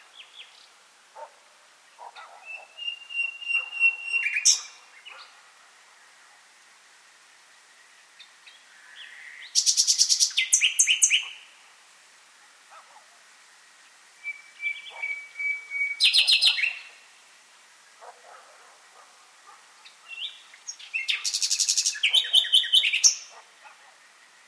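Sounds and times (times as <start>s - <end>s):
Common nightingale singing: 2.1s - 5.3s, 8.2s - 11.5s, 14.2s - 17.0s, 19.8s - 23.4s.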